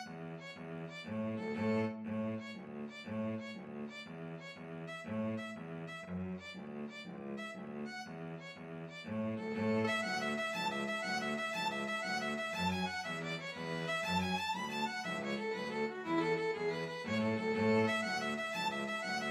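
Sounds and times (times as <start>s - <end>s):
two violins playing an Irish jig medley: 0.0s - 19.2s.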